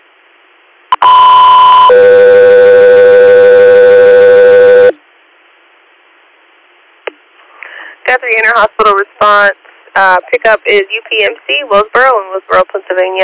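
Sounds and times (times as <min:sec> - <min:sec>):
two-tone dispatch alert: 0:01.0 - 0:05.0
speech: 0:08.3 - 0:13.2.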